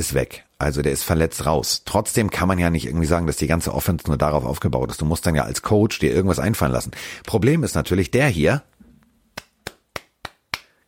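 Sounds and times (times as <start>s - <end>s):
speech: 0.0s - 8.7s
sharp hand claps: 9.4s - 10.8s.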